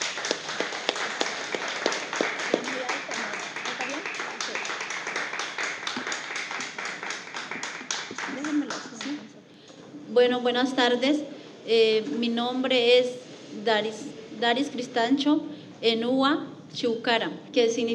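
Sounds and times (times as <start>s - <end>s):
audience applause: 0.0s - 9.2s
speech: 10.2s - 17.9s.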